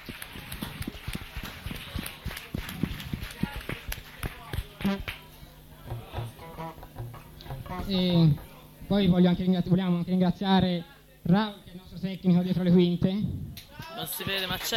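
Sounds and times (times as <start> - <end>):
audience applause: 0.0 - 5.3
speech: 4.9 - 5.1, 7.9 - 13.4, 14.0 - 14.7.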